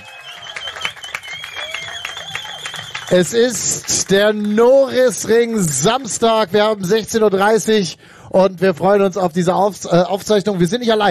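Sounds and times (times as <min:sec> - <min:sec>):
whistles from the crowd: 0:00.0 - 0:03.2
cheering voices: 0:00.0 - 0:04.2
live crowd applause: 0:00.0 - 0:04.6
speech: 0:03.1 - 0:11.0.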